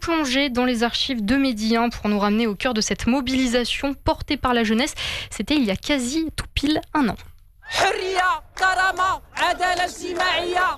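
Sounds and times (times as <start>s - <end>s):
speech: 0.0s - 10.7s
protest crowd chanting slogans: 7.7s - 10.7s.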